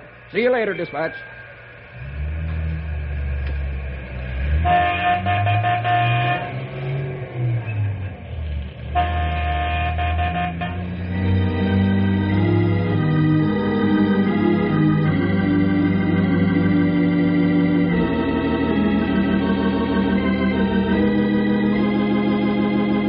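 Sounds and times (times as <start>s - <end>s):
train rumbling on the rails: 0.0s - 23.0s
speech: 0.3s - 1.4s, 4.6s - 5.3s
train horn blasts: 4.5s - 6.6s, 8.9s - 11.4s.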